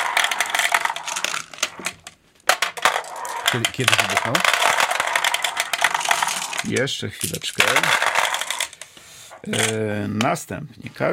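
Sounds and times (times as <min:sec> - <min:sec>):
glass marbles dropping into lottery machine: 0:00.0 - 0:08.8
speech: 0:03.5 - 0:04.7, 0:06.6 - 0:08.2, 0:09.4 - 0:11.1.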